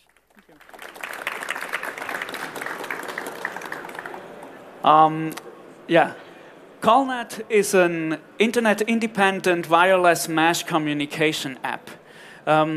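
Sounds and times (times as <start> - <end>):
audience applause: 0.0 - 4.8
speech: 4.8 - 6.2, 6.8 - 12.7.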